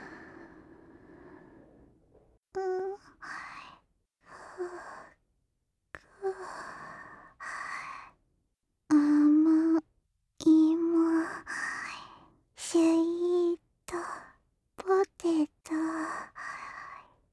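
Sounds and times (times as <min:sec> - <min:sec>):
sleeping breath: 0:00.0 - 0:02.3
person sleep talking: 0:00.0 - 0:05.2, 0:06.0 - 0:08.2, 0:08.9 - 0:09.8, 0:10.4 - 0:17.1.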